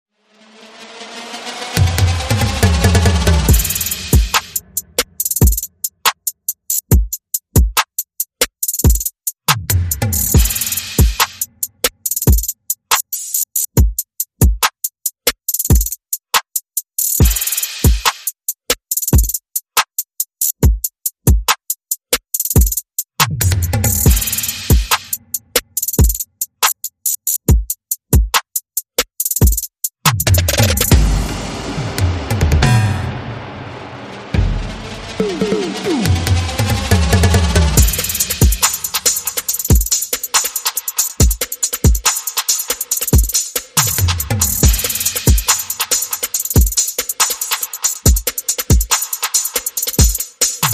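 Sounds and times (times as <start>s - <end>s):
percussion: 0.5s - 50.7s
sound effects: 30.8s - 39.5s.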